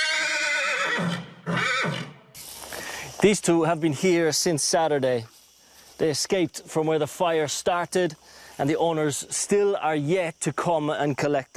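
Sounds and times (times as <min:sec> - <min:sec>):
horse neighing: 0:00.0 - 0:02.2
speech: 0:01.0 - 0:01.2, 0:03.2 - 0:05.4, 0:06.0 - 0:11.5.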